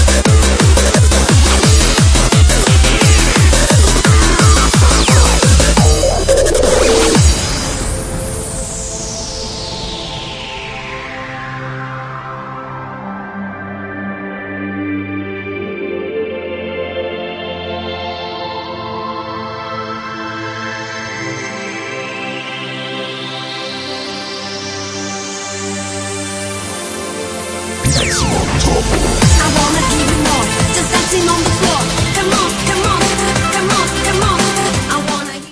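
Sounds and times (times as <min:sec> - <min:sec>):
acid turbo electronic music: 0:00.0 - 0:07.8, 0:27.8 - 0:34.8.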